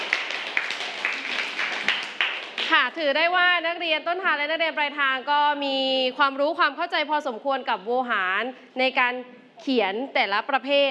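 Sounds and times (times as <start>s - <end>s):
students applauding a student group in a classroom: 0.0s - 2.8s
speech: 2.7s - 10.8s.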